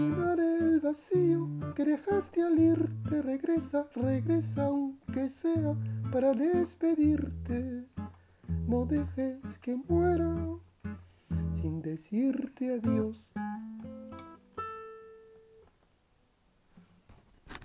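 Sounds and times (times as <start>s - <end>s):
person singing: 0.0s - 10.7s, 11.3s - 13.4s
guitar: 0.0s - 16.0s.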